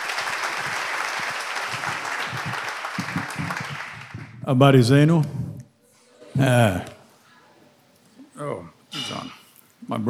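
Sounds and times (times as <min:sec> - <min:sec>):
audience applause: 0:00.0 - 0:04.4
speech: 0:04.5 - 0:05.4, 0:06.4 - 0:06.9, 0:09.9 - 0:10.0.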